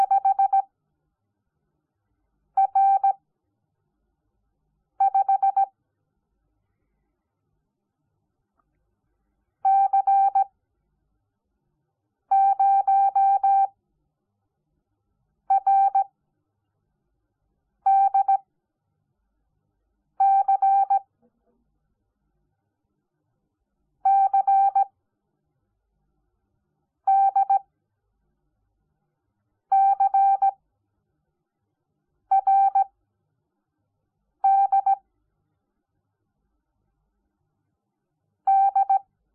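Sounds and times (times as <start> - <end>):
morse code beeps: 0.0 - 0.6, 2.6 - 3.2, 5.0 - 5.7, 9.7 - 10.5, 12.3 - 13.7, 15.5 - 16.1, 17.9 - 18.4, 20.2 - 21.1, 24.1 - 24.9, 27.1 - 27.6, 29.8 - 30.6, 32.3 - 32.9, 34.5 - 35.0, 38.5 - 39.0.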